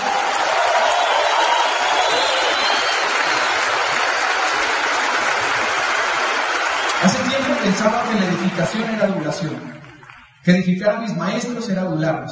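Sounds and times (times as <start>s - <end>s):
audience applause: 0.0s - 10.4s
speech: 8.1s - 9.8s, 10.4s - 12.2s.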